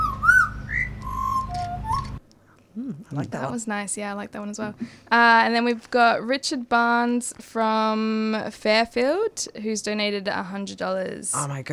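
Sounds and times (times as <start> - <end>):
person whistling a butcherbird call: 0.0 - 2.2
steady low hum: 0.0 - 2.2
speech: 3.1 - 11.7.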